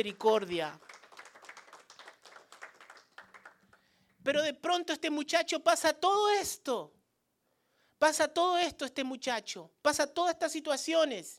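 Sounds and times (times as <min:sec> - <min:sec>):
speech: 0:00.0 - 0:00.9, 0:04.2 - 0:07.0, 0:08.0 - 0:11.3
audience clapping: 0:00.0 - 0:03.9.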